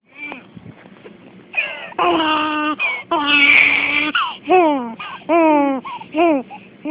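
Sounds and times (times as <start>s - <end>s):
hungry baby girl crying: 1.6s - 6.9s.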